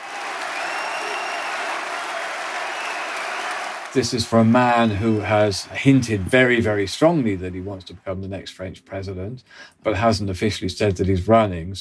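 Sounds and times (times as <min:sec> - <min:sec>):
crowd shouting: 0:00.0 - 0:07.3
crowd cheering: 0:00.0 - 0:08.3
speech: 0:03.9 - 0:11.7.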